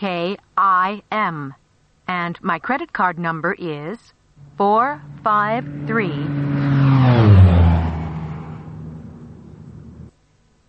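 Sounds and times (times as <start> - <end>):
speech: 0.0 - 6.8
airplane flying overhead: 4.4 - 10.1.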